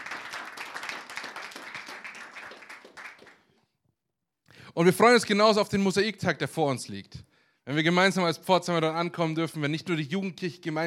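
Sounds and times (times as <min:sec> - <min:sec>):
audience applause: 0:00.0 - 0:03.5
speech: 0:04.8 - 0:10.8.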